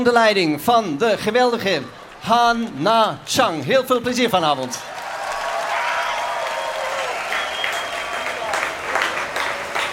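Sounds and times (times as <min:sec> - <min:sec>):
speech: 0:00.0 - 0:04.9
concert audience applauding an orchestra: 0:02.8 - 0:09.9.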